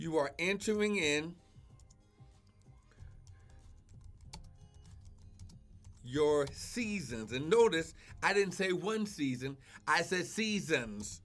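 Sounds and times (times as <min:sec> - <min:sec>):
speech: 0:00.0 - 0:01.4, 0:06.0 - 0:11.2
typing a post on a computer keyboard: 0:01.7 - 0:07.0.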